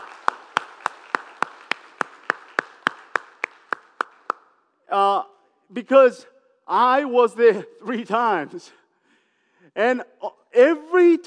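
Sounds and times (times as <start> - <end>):
soft applause: 0.0 - 4.5
audience clapping: 0.0 - 4.6
speech: 4.9 - 8.8, 9.8 - 11.2.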